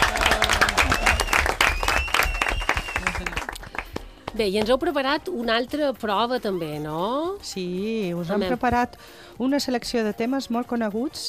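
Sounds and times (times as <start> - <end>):
audience applause: 0.0 - 4.1
speech: 4.4 - 11.2.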